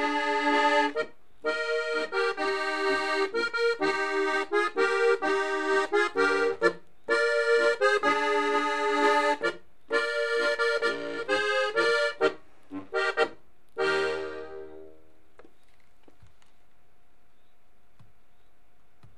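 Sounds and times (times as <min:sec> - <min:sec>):
waltz music: 0:00.0 - 0:15.1.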